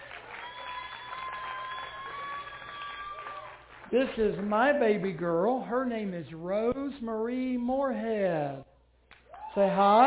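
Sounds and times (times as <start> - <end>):
audience applause: 0.0 - 4.8
speech: 3.9 - 8.7, 9.6 - 10.0.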